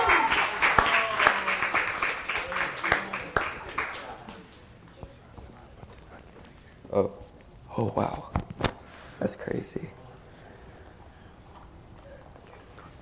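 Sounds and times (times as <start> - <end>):
audience applause: 0.0 - 4.3
speech: 7.0 - 7.2, 7.8 - 8.4, 9.2 - 10.0.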